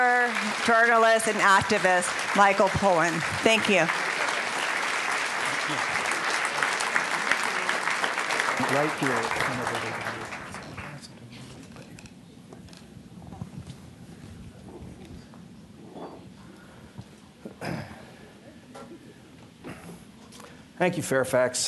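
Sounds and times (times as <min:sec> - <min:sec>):
speech: 0:00.0 - 0:04.0, 0:05.7 - 0:06.0, 0:08.7 - 0:10.4, 0:20.8 - 0:21.6
audience applause: 0:00.0 - 0:11.1.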